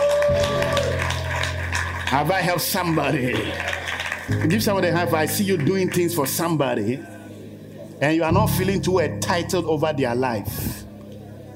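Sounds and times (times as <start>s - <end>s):
audience clapping hands: 0.0s - 6.7s
speech: 2.1s - 3.7s, 4.3s - 7.1s, 8.0s - 10.8s.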